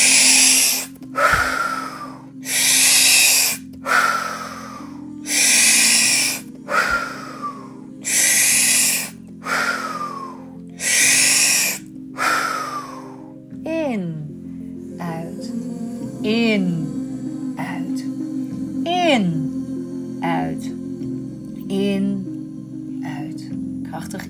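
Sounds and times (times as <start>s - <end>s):
slow breathing through the nose in a guided breathing exercise: 0.0s - 13.4s
quiet low drone: 0.0s - 13.5s, 14.4s - 24.2s.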